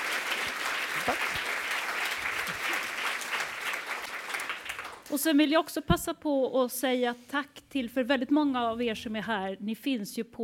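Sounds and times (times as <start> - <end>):
audience applause: 0.0 - 5.1
speech: 1.0 - 1.3, 5.1 - 10.4.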